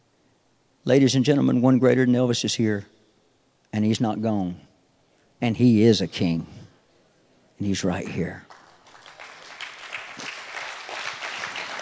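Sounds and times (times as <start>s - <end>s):
speech: 0.8s - 3.0s, 3.7s - 4.7s, 5.4s - 6.6s, 7.6s - 8.5s
audience clapping hands: 8.4s - 11.8s.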